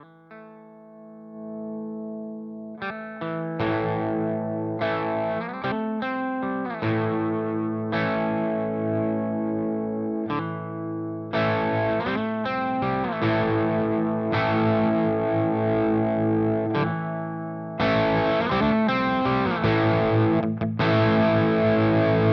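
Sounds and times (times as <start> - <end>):
Crazy Tube Circuits Space Charged V2 pedal with volume pot adjustment: 0.0 - 22.3.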